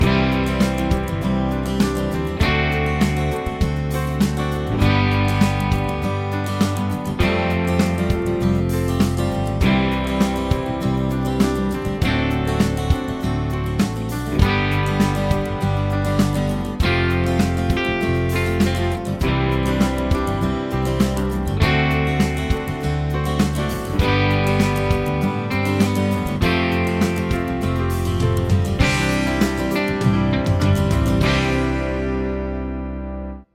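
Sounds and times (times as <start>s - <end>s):
chord progressions with applied chords: 0.0s - 33.4s.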